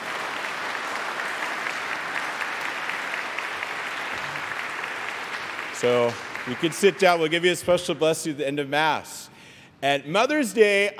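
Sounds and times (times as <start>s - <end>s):
audience applause: 0.0s - 7.4s
speech: 5.8s - 10.9s.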